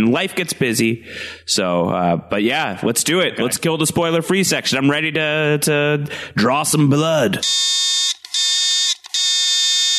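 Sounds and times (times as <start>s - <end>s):
speech: 0.0s - 7.9s
harsh electronic buzzer: 7.4s - 9.9s.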